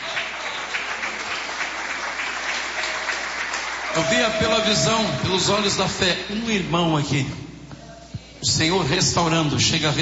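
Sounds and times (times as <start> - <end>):
people clapping: 0.0 - 5.7
speech: 4.0 - 7.5, 8.4 - 10.0.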